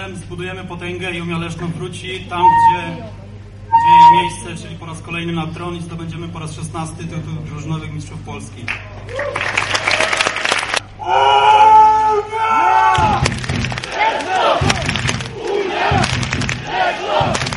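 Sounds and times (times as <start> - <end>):
speech: 0.1 - 3.2, 3.8 - 9.8
large stadium crowd of fans cheering: 8.9 - 17.5
crowd of fans chanting tunefully: 13.8 - 17.5
rhythmic thumping beats: 14.6 - 17.5.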